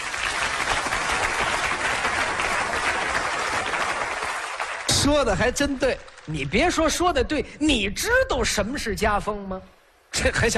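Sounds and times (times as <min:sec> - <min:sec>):
audience applause: 0:00.0 - 0:06.8
speech: 0:05.0 - 0:10.5.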